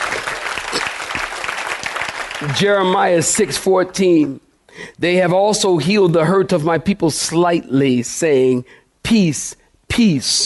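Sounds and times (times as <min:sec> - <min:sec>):
audience clapping hands: 0:00.0 - 0:03.5
speech: 0:02.4 - 0:10.4.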